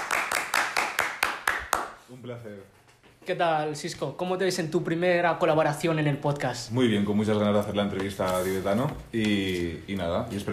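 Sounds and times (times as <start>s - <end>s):
applause: 0.0s - 2.0s
speech: 2.1s - 10.5s.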